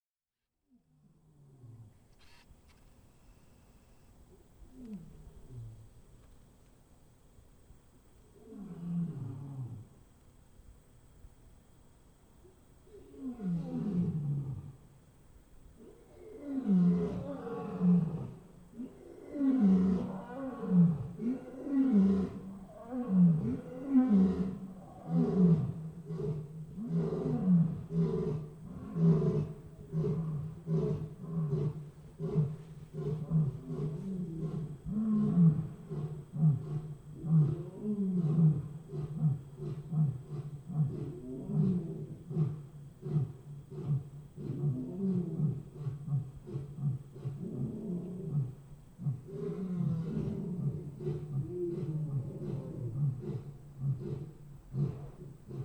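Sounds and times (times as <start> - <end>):
lion roar: 8.4 - 9.9, 12.9 - 14.8, 15.8 - 55.6.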